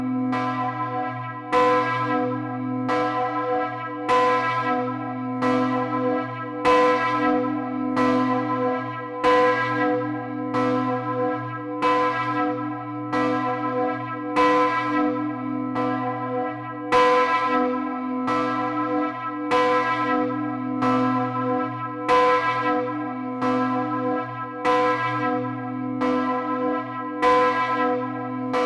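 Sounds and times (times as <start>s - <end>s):
church bell ringing in Ettiswil: 0.0s - 28.6s.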